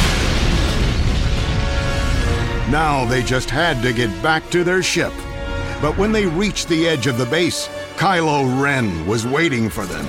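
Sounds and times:
massive explosion of the Starkiller base cooling device: 0.0 - 6.5
speech: 2.7 - 5.2, 5.8 - 10.0.

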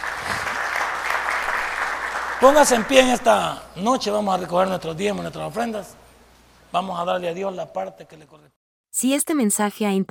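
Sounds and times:
loud audience applause: 0.0 - 3.6
speech: 2.4 - 6.0, 6.7 - 10.0.

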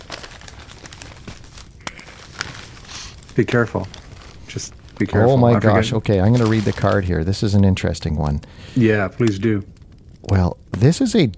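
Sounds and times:
wrapping paper tearing: 0.0 - 7.2
wrapping paper crinkling as a Christmas gift is opened: 0.0 - 11.2
speech: 3.4 - 11.3.

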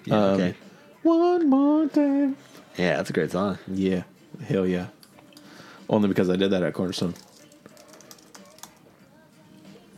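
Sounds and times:
speech: 0.0 - 5.0, 5.9 - 7.3
computer keyboard typing: 7.1 - 8.8.

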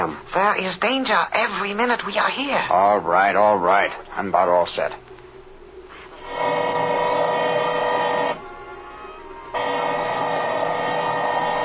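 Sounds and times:
speech: 0.0 - 5.1
drill boring into a safe: 6.2 - 8.4, 9.6 - 11.6.

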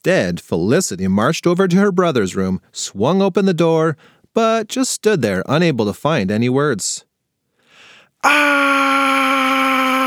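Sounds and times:
speech: 0.0 - 7.1, 8.2 - 10.0
girl screaming: 8.2 - 10.0.

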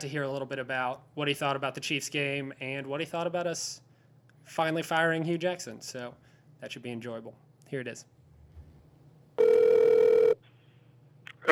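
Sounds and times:
speech: 0.0 - 8.2
telephone ringing tone on an outgoing call: 9.4 - 10.4.

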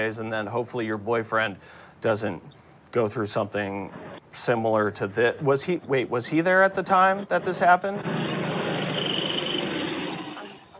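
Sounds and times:
speech: 0.0 - 8.4
truck driving by: 7.3 - 10.7.

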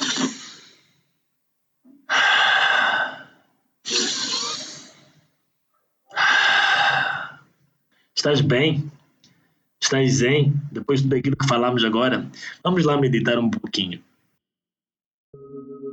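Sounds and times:
deep breaths: 2.1 - 5.4, 6.1 - 8.2, 9.2 - 9.8, 12.3 - 12.6
speech: 8.2 - 9.0, 9.9 - 14.1.

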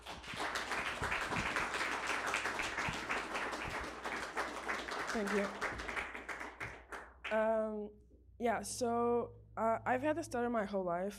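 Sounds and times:
audience applause: 0.0 - 7.0
speech: 5.2 - 5.7, 7.3 - 11.1.

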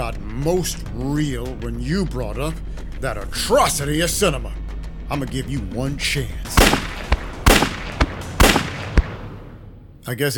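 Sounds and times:
speech: 0.1 - 6.7, 10.1 - 10.3
gunshots fired at range: 6.5 - 9.8
small pops and bangs: 6.6 - 9.2.

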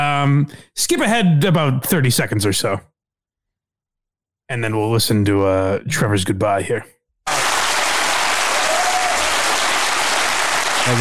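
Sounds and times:
speech: 0.0 - 2.9, 4.5 - 7.0
big audience applause: 7.3 - 10.9.

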